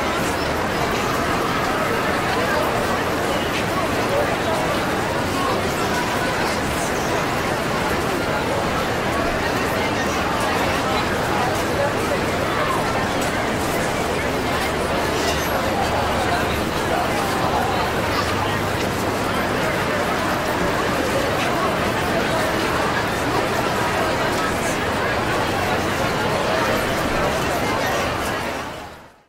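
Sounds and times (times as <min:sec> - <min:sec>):
busy street crowd in a city: 0:00.0 - 0:29.2.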